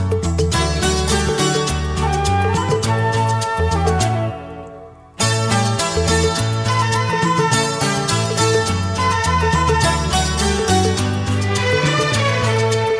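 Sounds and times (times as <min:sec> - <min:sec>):
instrumental tone: 0:00.1 - 0:12.9.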